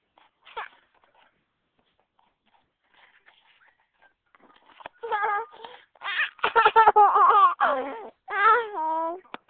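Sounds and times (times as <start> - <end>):
baby laughing: 4.7 - 8.2.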